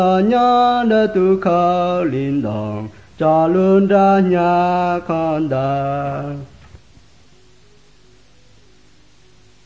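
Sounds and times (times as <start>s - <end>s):
White Hmong songs being sung: 0.0s - 6.7s.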